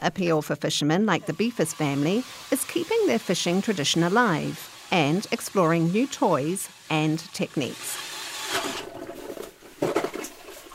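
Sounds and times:
speech: 0.0 - 8.0
hand auger with drill adapter boring ice: 1.1 - 10.4.

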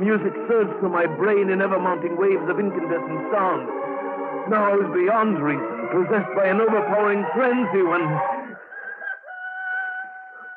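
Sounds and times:
speech: 0.0 - 8.3
rooster crowing: 8.2 - 10.5.

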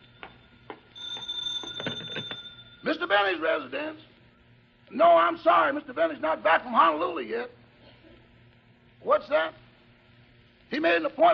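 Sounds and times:
telephone ringing: 0.0 - 3.7
speech: 2.8 - 4.1, 4.9 - 7.6, 9.0 - 9.6, 10.7 - 11.3.

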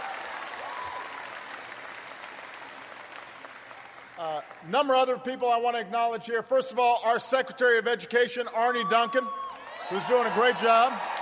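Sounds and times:
audience applause: 0.0 - 4.7, 9.6 - 11.2
speech: 4.2 - 11.1.

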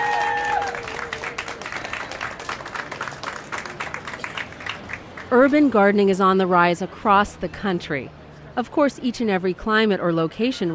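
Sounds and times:
audience applause: 0.0 - 5.3
speech: 5.3 - 10.7.

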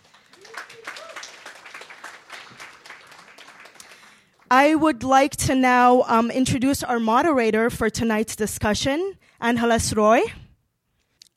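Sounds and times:
audience applause: 0.0 - 4.5
speech: 4.5 - 10.4.

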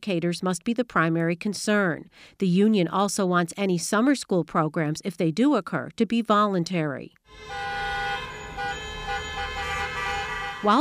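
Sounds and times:
speech: 0.0 - 7.8, 10.6 - 10.8
car horns honking outside at protest: 7.3 - 10.8.

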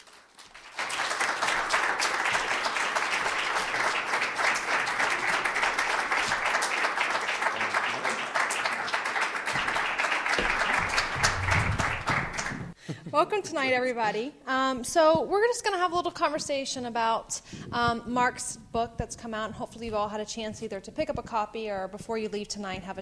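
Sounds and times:
audience applause welcoming speakers at an evening book conversation: 0.0 - 12.8
speech: 13.2 - 23.0.

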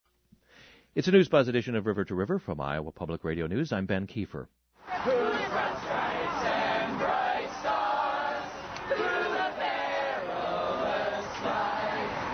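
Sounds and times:
speech: 1.0 - 5.2
protesters chanting in a street march: 4.8 - 12.3.

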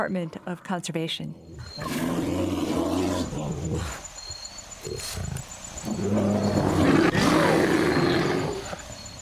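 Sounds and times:
speech: 0.0 - 2.6, 3.7 - 4.1, 4.8 - 7.7
black bear roaring and growling: 1.5 - 4.0, 4.8 - 8.8.

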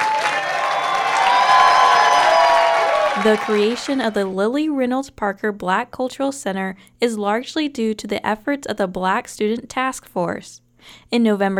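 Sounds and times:
crowd applauding and cheering at a ribbon cutting for a university Black cultural center: 0.0 - 4.3
speech: 3.2 - 11.5.

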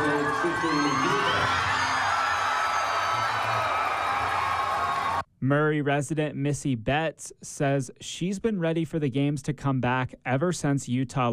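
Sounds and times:
crowd cheering: 0.0 - 5.3
speech: 5.5 - 11.3.

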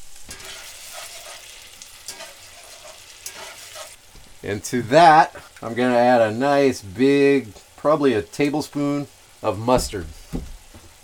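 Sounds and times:
chicken stock sizzling in a hot pan: 0.0 - 9.5
speech: 4.4 - 10.5.

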